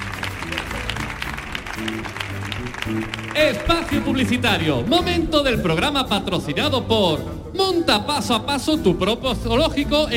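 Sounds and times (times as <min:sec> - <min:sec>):
audience applause: 0:00.0 - 0:04.6
speech: 0:01.8 - 0:10.1.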